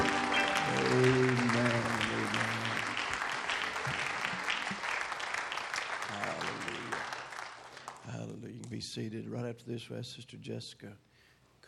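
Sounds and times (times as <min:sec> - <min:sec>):
audience hand clapping: 0:00.0 - 0:08.8
speech: 0:09.0 - 0:11.1.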